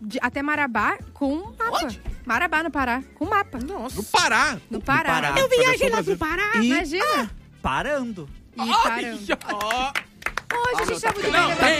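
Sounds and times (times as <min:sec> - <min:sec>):
speech: 0:00.1 - 0:11.7
hand clapping: 0:09.3 - 0:11.7.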